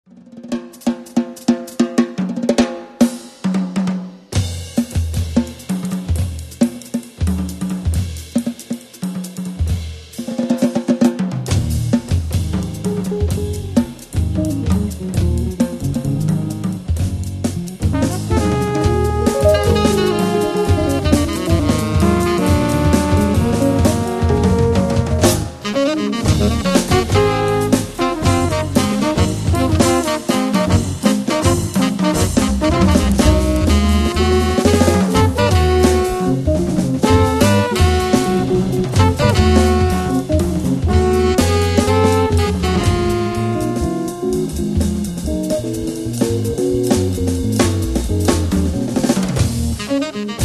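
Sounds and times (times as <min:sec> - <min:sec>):
drum: 0:00.4 - 0:50.4.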